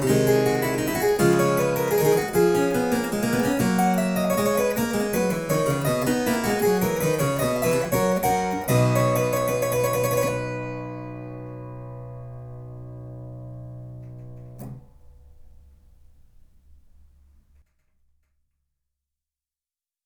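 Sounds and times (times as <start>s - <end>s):
harpsichords playing: 0.0s - 12.6s.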